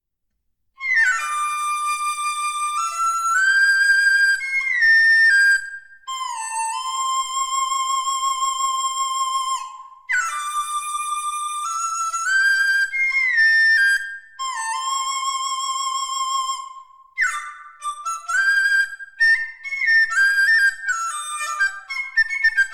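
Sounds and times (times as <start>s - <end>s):
dizi bamboo flute: 0.8s - 22.7s.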